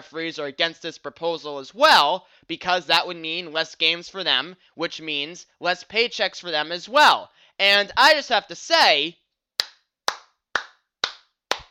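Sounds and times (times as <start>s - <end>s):
speech: 0.0s - 9.2s
hands clapping: 9.6s - 11.6s.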